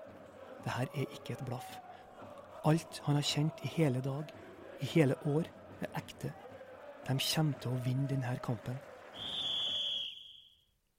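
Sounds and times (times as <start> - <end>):
speech: 0.6 - 1.9, 2.6 - 6.4, 7.0 - 9.4
referee's whistle at a football match: 9.2 - 10.6.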